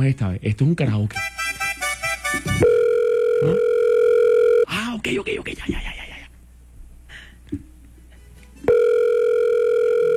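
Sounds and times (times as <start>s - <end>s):
speech: 0.0s - 1.4s, 3.4s - 3.7s, 5.0s - 6.0s
unanswered telephone call electronic ringing tone: 2.6s - 4.7s, 8.7s - 10.1s.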